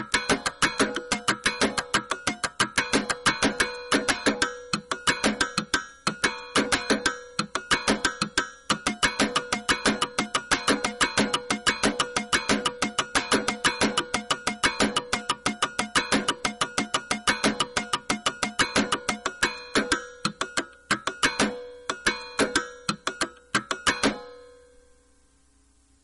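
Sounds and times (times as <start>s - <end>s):
percussion: 0.0s - 24.5s.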